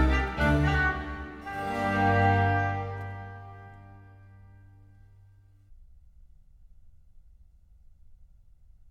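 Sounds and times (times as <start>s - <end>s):
concerto in G minor allegro: 0.0s - 5.3s.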